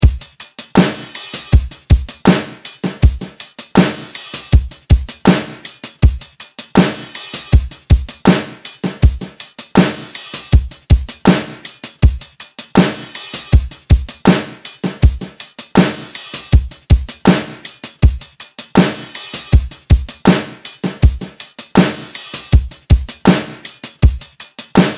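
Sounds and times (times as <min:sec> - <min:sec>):
rap beat: 0:00.0 - 0:24.9.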